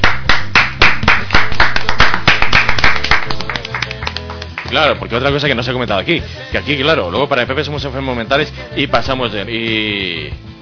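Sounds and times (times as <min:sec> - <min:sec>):
hand clapping: 0:00.0 - 0:05.0
speech: 0:04.8 - 0:10.5.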